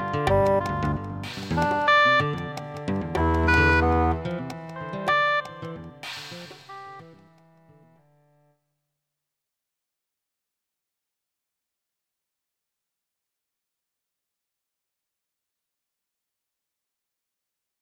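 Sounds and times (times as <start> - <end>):
oboe: 0.0 - 5.8
percussion polyrhythm: 0.0 - 7.6
guitar: 0.0 - 8.1
contrabass: 0.0 - 8.3.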